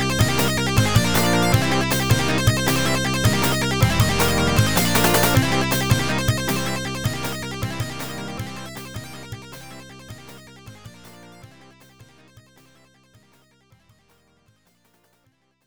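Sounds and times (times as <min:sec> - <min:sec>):
winning music: 0:00.0 - 0:11.4.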